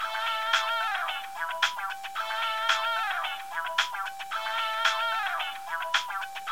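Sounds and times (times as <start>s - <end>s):
ringtone: 0.0s - 6.5s.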